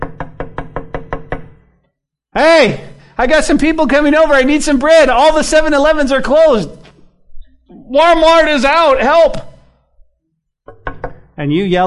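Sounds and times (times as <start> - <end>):
knocking on a door: 0.0 - 1.6, 10.7 - 11.4
speech: 2.4 - 6.8, 7.9 - 9.5, 11.4 - 11.8.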